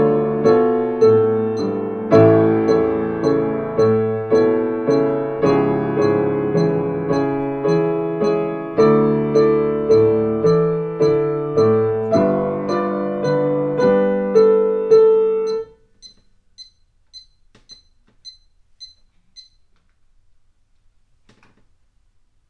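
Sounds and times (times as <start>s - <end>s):
piano: 0.0s - 15.8s.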